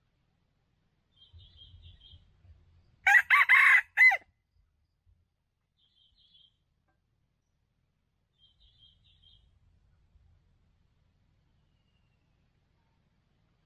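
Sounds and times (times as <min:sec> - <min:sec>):
red junglefowl crowing: 0:03.1 - 0:04.2.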